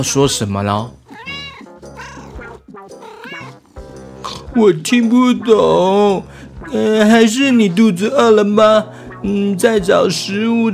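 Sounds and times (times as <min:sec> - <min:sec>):
speech: 0:00.0 - 0:01.0, 0:04.6 - 0:10.7
cat meowing: 0:01.1 - 0:03.7.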